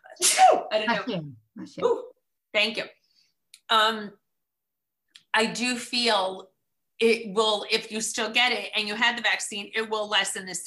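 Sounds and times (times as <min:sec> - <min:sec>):
sneeze: 0:00.0 - 0:00.8
speech: 0:00.2 - 0:03.0, 0:03.7 - 0:04.2, 0:05.3 - 0:10.6.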